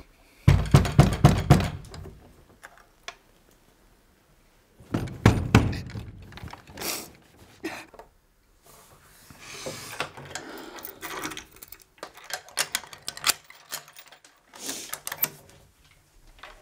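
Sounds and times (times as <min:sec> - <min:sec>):
heavy knocking on a door: 0:00.5 - 0:01.8, 0:04.9 - 0:06.1.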